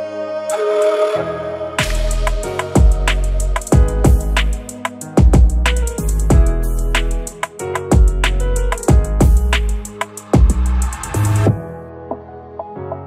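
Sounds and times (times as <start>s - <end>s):
oriental trap beat with Balkan hip hop instrumental: 1.8s - 11.6s.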